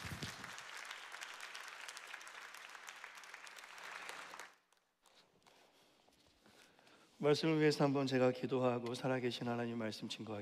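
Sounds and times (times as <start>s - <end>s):
audience applause: 0.0s - 4.6s
speech: 7.2s - 10.4s.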